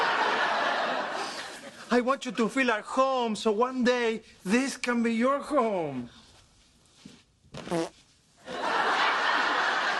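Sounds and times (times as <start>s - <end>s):
laughter: 0.0s - 1.9s, 8.4s - 9.9s
speech: 1.9s - 6.2s, 7.6s - 8.0s
fart: 7.5s - 8.1s.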